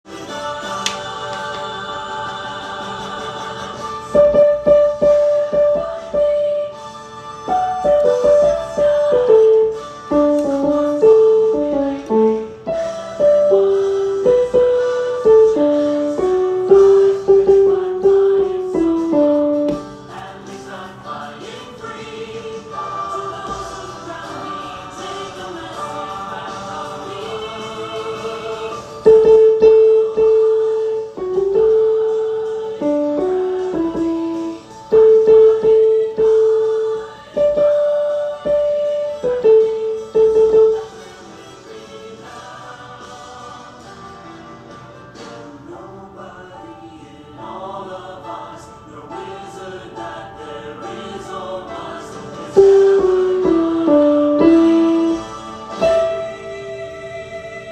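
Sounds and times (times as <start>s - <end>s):
second soprano singing: 0.1s - 43.8s, 45.3s - 57.7s.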